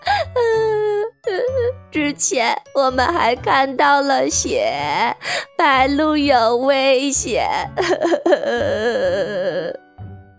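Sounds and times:
child crying: 0.0s - 1.8s, 7.5s - 9.8s
speech: 1.9s - 9.8s.

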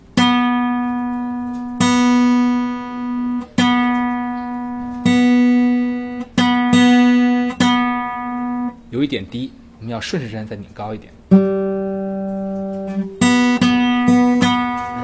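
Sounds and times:
guitar string plucked at fourth fret: 0.0s - 8.9s, 11.3s - 15.0s
speech: 9.1s - 11.2s.

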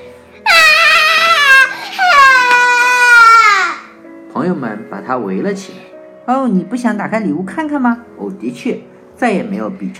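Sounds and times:
child crying loudly: 0.4s - 4.0s
speech: 4.4s - 9.9s.

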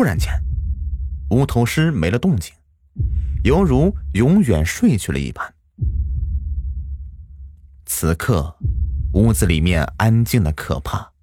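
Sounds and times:
speech: 0.0s - 0.4s, 1.3s - 5.9s, 7.9s - 11.1s
heartbeat thumping: 0.0s - 1.6s, 3.0s - 4.8s, 5.8s - 10.2s.

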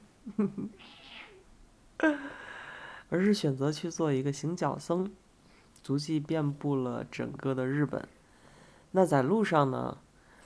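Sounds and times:
speech: 0.4s - 1.1s, 2.0s - 2.3s, 3.1s - 5.2s, 5.8s - 8.2s, 8.9s - 10.0s
cat meowing: 0.8s - 1.5s.

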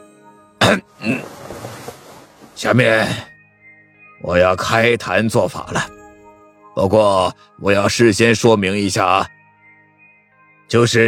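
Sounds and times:
master clearing his throat: 0.6s - 1.3s
speech: 0.7s - 1.4s, 2.6s - 3.3s, 4.2s - 6.0s, 6.8s - 9.4s, 10.7s - 11.0s.

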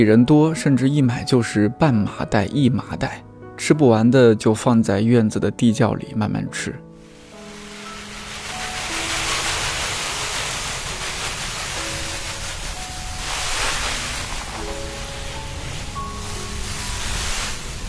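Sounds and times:
speech: 0.0s - 6.9s
garden hose spraying water on vegetables: 7.0s - 17.8s.

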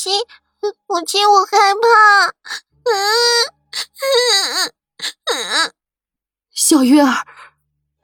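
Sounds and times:
speech: 0.0s - 5.8s, 6.6s - 7.5s
young girl wailing and crying: 1.7s - 5.7s.

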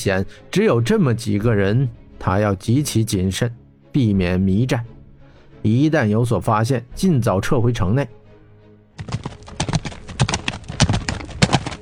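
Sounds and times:
speech: 0.0s - 4.9s, 5.6s - 8.2s
horse hooves clip-clopping: 9.0s - 11.7s.

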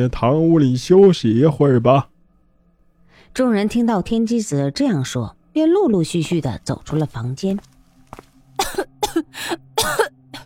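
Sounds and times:
speech: 0.0s - 2.1s, 3.3s - 8.2s, 8.8s - 10.2s
violent coughing: 8.6s - 10.4s.

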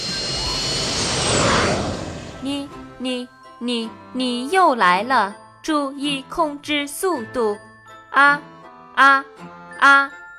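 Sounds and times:
small airplane diving toward the ground: 0.0s - 3.0s
speech: 3.0s - 10.2s.

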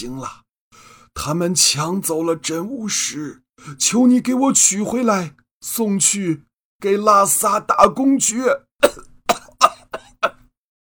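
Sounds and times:
speech: 0.0s - 0.4s, 1.2s - 9.0s
violent coughing: 8.8s - 10.5s.

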